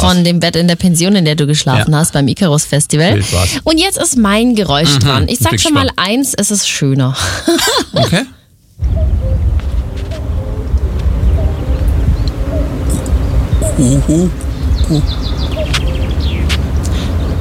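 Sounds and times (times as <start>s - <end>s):
speech: 0.0s - 9.7s, 13.8s - 15.4s
laughter: 3.1s - 3.6s, 4.8s - 5.9s, 7.2s - 8.4s
common cuckoo calling: 8.8s - 17.3s.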